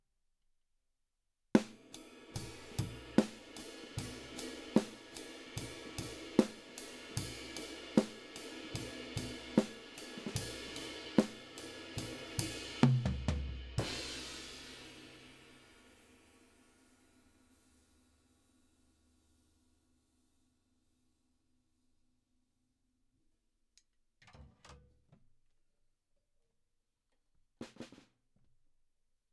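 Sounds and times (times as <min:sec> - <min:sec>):
drums: 0:01.6 - 0:19.7, 0:27.6 - 0:28.3.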